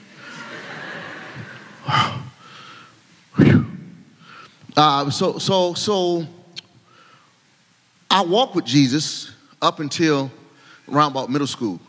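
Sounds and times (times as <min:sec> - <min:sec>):
laughter: 0:00.0 - 0:02.0
speaker breathing heavily out of breath after dancing: 0:01.8 - 0:04.6
speech: 0:04.8 - 0:06.4, 0:08.1 - 0:11.8.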